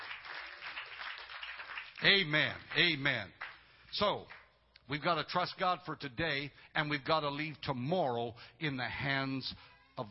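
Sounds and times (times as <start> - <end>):
audience clapping hands: 0.0 - 4.6
speech: 2.0 - 10.0.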